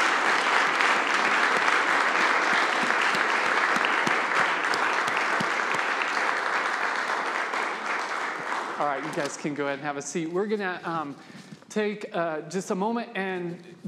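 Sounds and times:
round of applause for graduates: 0:00.0 - 0:09.6
speech: 0:09.0 - 0:13.8.

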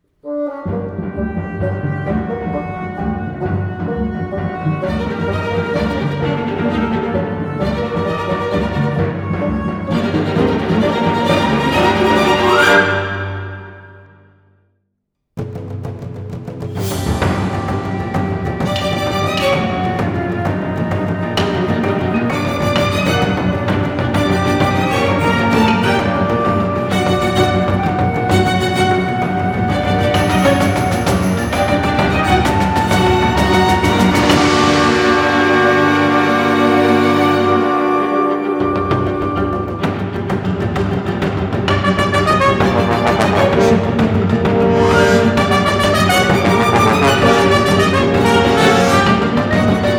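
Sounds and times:
orchestral action music: 0:00.6 - 0:13.9, 0:15.5 - 0:49.9.

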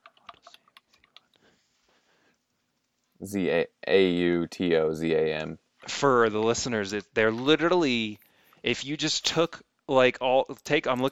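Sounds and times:
computer keyboard typing: 0:00.0 - 0:01.4
speech: 0:03.2 - 0:11.1.

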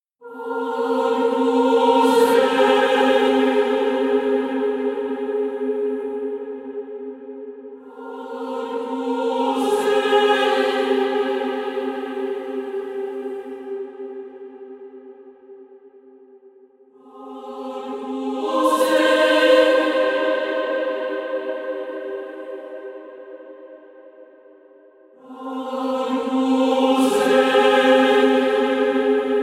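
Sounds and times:
instrumental sacred music: 0:00.2 - 0:16.4, 0:17.0 - 0:29.4.

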